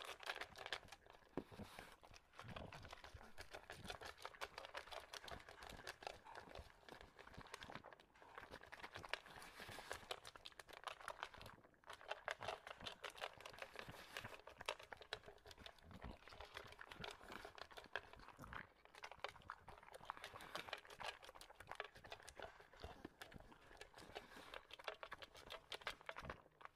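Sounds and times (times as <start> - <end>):
English bulldog crunching kibble: 0.0 - 26.7.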